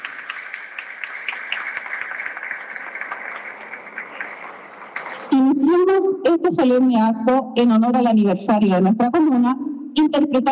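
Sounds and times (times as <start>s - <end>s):
audience applause: 0.0s - 5.4s
speech: 5.3s - 10.5s.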